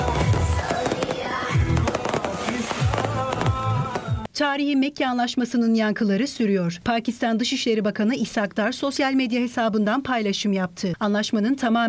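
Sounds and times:
fireworks exploding in the sky: 0.0s - 4.3s
speech: 4.4s - 11.8s.

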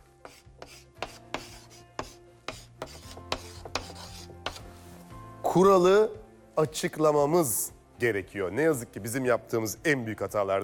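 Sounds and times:
writing with a pink pen: 0.2s - 4.7s
speech: 5.6s - 10.6s.

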